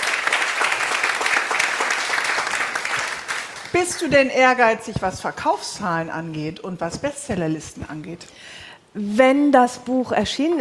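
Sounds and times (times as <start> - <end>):
audience applause: 0.0 - 4.1
speech: 3.7 - 10.6.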